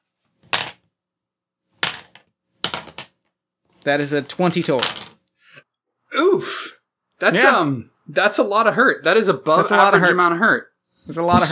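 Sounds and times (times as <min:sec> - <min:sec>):
dice rolling: 0:00.4 - 0:00.9, 0:01.7 - 0:03.3, 0:04.2 - 0:05.3
speech: 0:03.8 - 0:05.0, 0:07.2 - 0:11.5.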